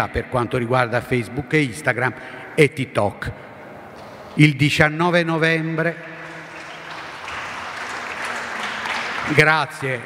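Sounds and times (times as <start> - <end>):
speech: 0.0 - 3.5, 4.4 - 6.1, 9.2 - 10.0
audience applause: 6.2 - 10.0.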